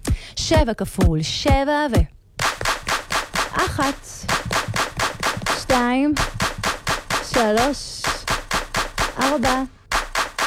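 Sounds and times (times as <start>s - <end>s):
speech: 0.5s - 2.2s, 3.6s - 4.4s, 5.8s - 6.3s, 7.4s - 8.0s, 9.2s - 9.8s
group clapping: 2.4s - 10.4s.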